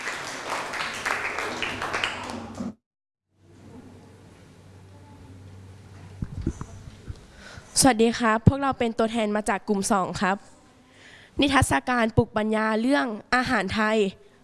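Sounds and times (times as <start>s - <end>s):
applause: 0.0s - 2.8s
speech: 7.8s - 10.5s, 11.4s - 14.2s.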